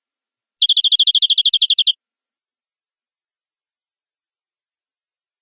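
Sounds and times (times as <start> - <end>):
canary rolling trill song: 0.6 - 2.0.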